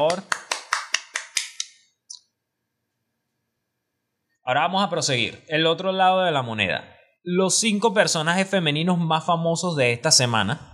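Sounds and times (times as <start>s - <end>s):
speech: 0.0s - 0.4s, 4.5s - 10.7s
applause: 0.0s - 1.6s.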